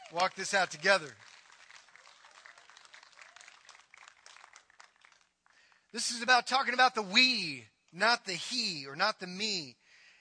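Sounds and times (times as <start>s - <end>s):
audience applause: 0.0s - 5.7s
speech: 0.1s - 1.3s, 6.0s - 9.8s.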